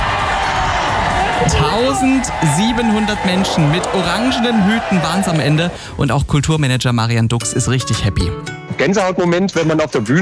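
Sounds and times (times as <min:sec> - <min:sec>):
crowd cheering on stage in Meiningen after a world-record group dance: 0:00.0 - 0:06.1
speech: 0:01.4 - 0:10.2.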